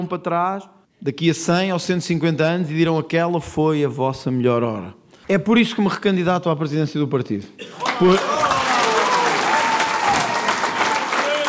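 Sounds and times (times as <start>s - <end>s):
speech: 0.0s - 8.5s
crowd applauding after a political speech: 7.8s - 11.4s.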